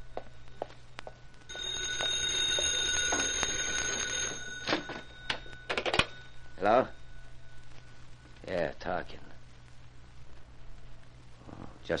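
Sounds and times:
telephone bell ringing: 1.5 - 7.6
speech: 6.6 - 7.0, 8.5 - 9.3.

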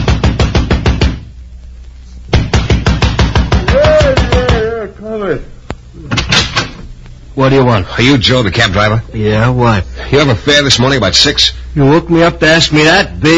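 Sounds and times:
fist pounding on a door: 0.0 - 1.2, 2.3 - 4.7
speech: 7.4 - 13.3.

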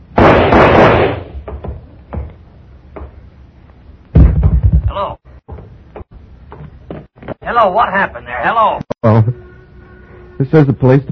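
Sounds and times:
gunshots in a radio drama: 0.1 - 1.4
speech: 7.5 - 9.3, 10.4 - 11.1.

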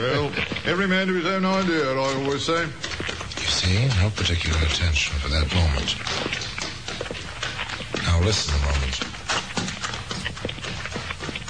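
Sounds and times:
speech: 0.0 - 6.4, 8.2 - 9.1
man running footsteps on hard road: 0.0 - 11.4.

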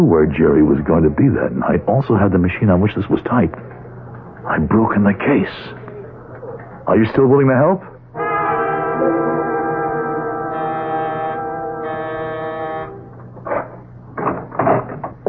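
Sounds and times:
speech: 0.0 - 3.8, 4.4 - 5.8, 6.9 - 7.9
doorbell ringing: 8.2 - 13.1.

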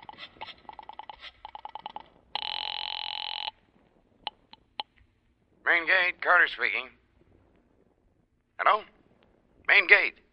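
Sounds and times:
telephone dialing clicks: 0.0 - 3.5
speech: 5.7 - 7.0, 8.6 - 9.0, 9.7 - 10.2.

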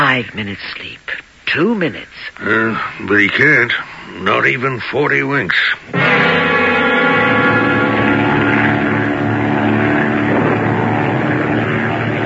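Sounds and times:
speech: 0.2 - 6.5
monotonous engine drone: 6.0 - 12.2.

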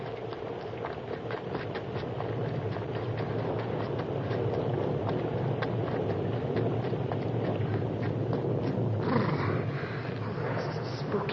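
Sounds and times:
rain: 0.0 - 11.3
thunderstorm: 3.2 - 11.3.

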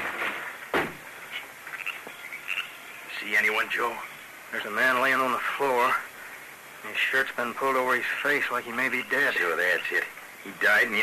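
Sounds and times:
wooden cabin door kicked open: 0.0 - 1.0
speech: 3.3 - 6.1, 6.8 - 11.0.

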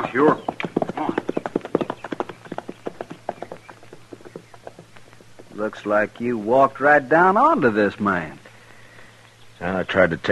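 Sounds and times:
horse hooves clip-clopping: 0.0 - 6.8
speech: 0.2 - 1.2, 5.6 - 8.4, 9.6 - 10.2.

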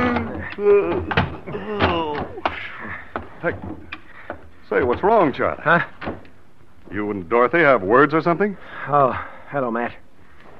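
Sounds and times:
man murmuring and grumbling: 0.0 - 3.1
door opening with dull wooden thunks: 0.0 - 6.4
speech: 0.6 - 2.0, 2.8 - 4.0, 4.7 - 6.2, 6.9 - 10.0.

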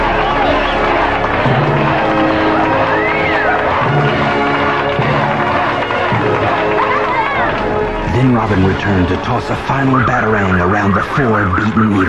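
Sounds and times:
audience cheering and clapping in a standing ovation: 0.0 - 12.0
speech: 8.4 - 12.0.

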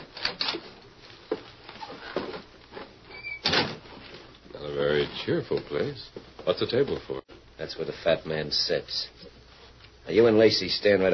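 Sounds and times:
wooden shack door creaking open: 3.1 - 3.9
speech: 5.2 - 9.3, 10.1 - 11.1.

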